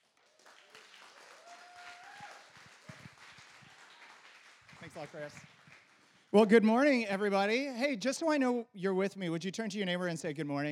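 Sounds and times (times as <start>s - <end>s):
church congregation applauding a guest speaker: 0.0s - 6.4s
speech: 4.9s - 5.6s, 6.3s - 10.7s.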